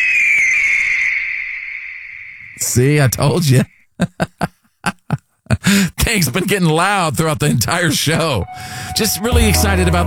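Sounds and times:
bald eagle whistling call: 0.0s - 2.6s
speech: 2.8s - 4.4s, 5.7s - 10.0s.

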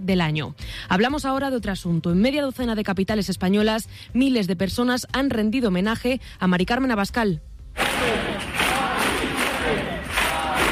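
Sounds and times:
speech: 0.0s - 7.5s
large crowd of protest marchers chanting and roaring: 7.8s - 10.7s.

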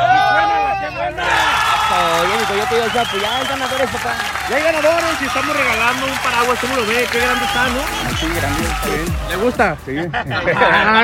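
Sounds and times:
crowd shouting and cheering: 0.0s - 11.0s
speech: 2.7s - 11.0s
laughter: 4.5s - 11.0s.

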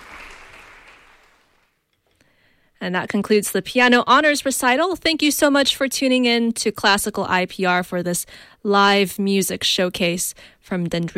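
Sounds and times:
audience applause after a piano honors recital at Dendrino's Chapel: 0.0s - 1.8s
speech: 2.8s - 11.1s.

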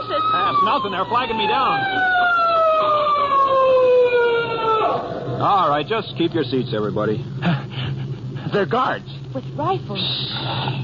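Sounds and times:
police siren approaching: 0.0s - 6.3s
speech: 0.5s - 2.4s, 5.4s - 7.6s, 8.5s - 10.8s.

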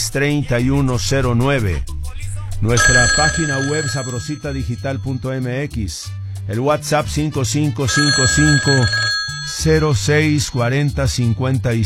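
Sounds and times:
speech: 0.1s - 1.9s, 2.6s - 11.8s
telephone on a studio call-in line ringing: 2.8s - 5.5s, 7.9s - 11.2s.

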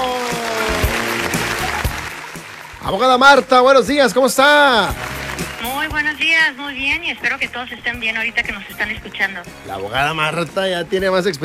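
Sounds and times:
audience applause: 0.0s - 6.4s
speech: 2.9s - 5.1s, 5.8s - 11.4s.

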